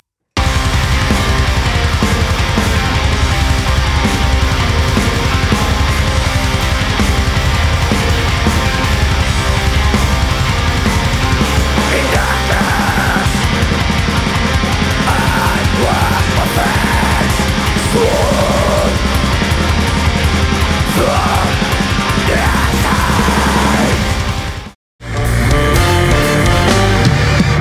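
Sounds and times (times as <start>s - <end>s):
metal music: 0.4s - 27.5s.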